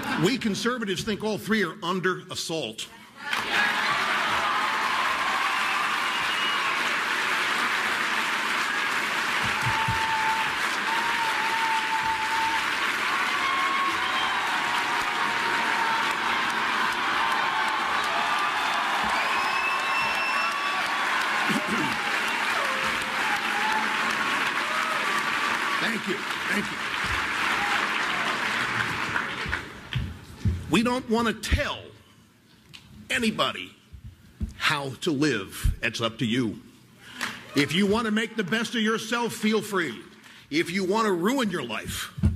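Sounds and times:
speech: 0.2 - 3.0, 31.0 - 31.9, 33.2 - 33.7, 34.7 - 36.7, 37.5 - 42.2
whoops and cheers: 3.3 - 7.1, 8.6 - 25.5, 27.3 - 28.7
crowd applause: 3.3 - 30.0.

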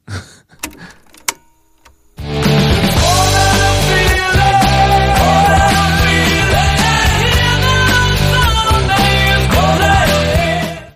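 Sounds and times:
faint clicks and handling noise: 0.6 - 2.2
popular 1976 pop song playing: 2.3 - 10.9.

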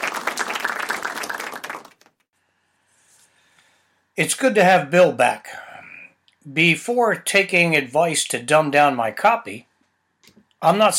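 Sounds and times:
golf clap: 0.0 - 2.3
speech: 4.2 - 5.6, 6.4 - 9.7, 10.6 - 10.9.

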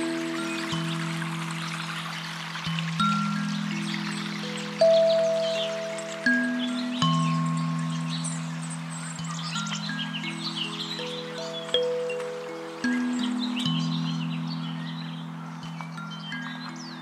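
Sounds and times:
birds chirping at Oaks Bottom along the Willamette River: 0.0 - 16.9.

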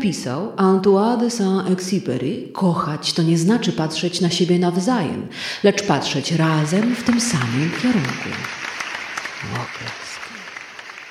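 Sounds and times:
speech: 0.0 - 8.6, 9.4 - 10.2
applause: 6.3 - 11.0.

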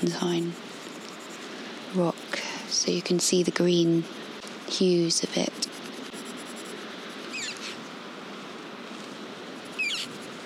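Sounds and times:
speech: 0.0 - 0.7, 1.9 - 5.7
wind or surf hiss: 0.0 - 10.4
Cornish chough calls: 7.3 - 7.8, 9.8 - 10.2.

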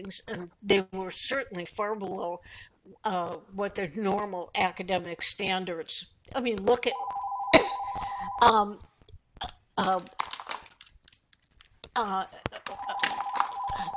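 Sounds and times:
speech: 0.0 - 7.2, 7.9 - 10.3, 12.0 - 12.9
telephone ringing: 6.9 - 8.6, 12.7 - 13.9.

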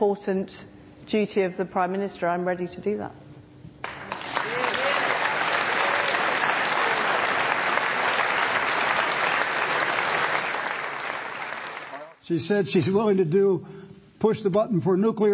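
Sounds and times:
speech: 0.0 - 3.2, 12.3 - 15.3
audience applause: 3.8 - 12.2.

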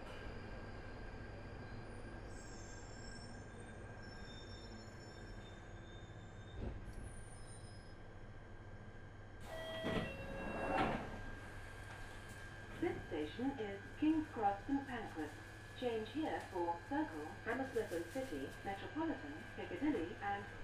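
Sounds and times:
empty Underground train rumble and whine: 0.0 - 20.6.

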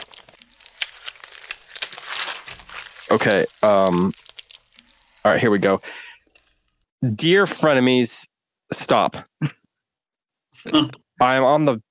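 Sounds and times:
paper crinkling and tearing as a postcard is unwrapped: 0.0 - 5.3
speech: 3.1 - 4.2, 5.2 - 6.1, 7.0 - 9.6, 10.6 - 11.9.

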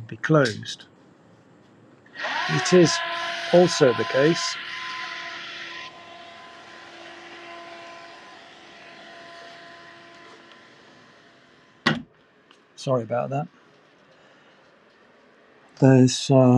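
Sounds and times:
speech: 0.1 - 0.9, 2.2 - 4.8, 12.8 - 13.6, 15.8 - 16.5
hedge-cutting machine engine in parkland: 2.1 - 11.8
sharp knock: 11.8 - 12.1.

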